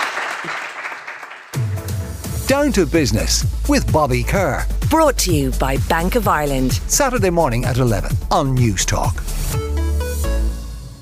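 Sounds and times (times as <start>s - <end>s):
crowd applauding: 0.0s - 2.0s
speech: 2.5s - 9.5s.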